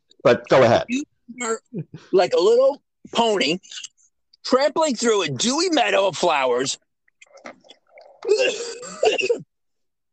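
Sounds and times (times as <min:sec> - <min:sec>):
speech: 0:00.2 - 0:06.8, 0:07.4 - 0:09.5
person coughing: 0:08.3 - 0:09.5.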